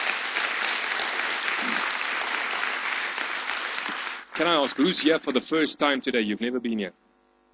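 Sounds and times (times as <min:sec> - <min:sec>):
congregation applause after worship: 0:00.0 - 0:04.4
speech: 0:04.4 - 0:07.0.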